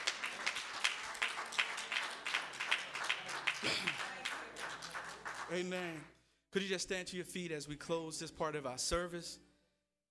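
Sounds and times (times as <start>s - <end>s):
crowd clapping: 0.0s - 6.1s
speech: 5.5s - 9.5s.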